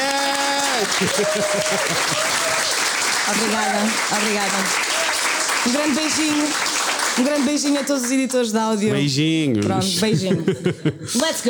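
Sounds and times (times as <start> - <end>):
audience clapping: 0.0 - 8.8
laughter: 0.7 - 2.7, 9.8 - 11.4
speech: 0.8 - 2.5, 3.3 - 4.9, 5.6 - 11.4.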